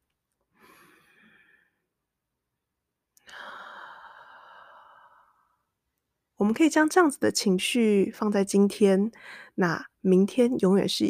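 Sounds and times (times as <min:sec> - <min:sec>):
long deep breath: 0:00.6 - 0:01.8, 0:03.2 - 0:05.6
speech: 0:06.4 - 0:11.0.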